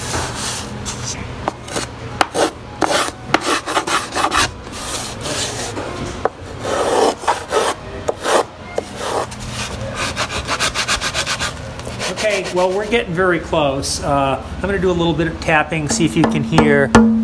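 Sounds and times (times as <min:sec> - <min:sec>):
tool carving a wooden instrument top: 0:00.0 - 0:05.8, 0:06.6 - 0:12.8
speech: 0:12.6 - 0:17.1.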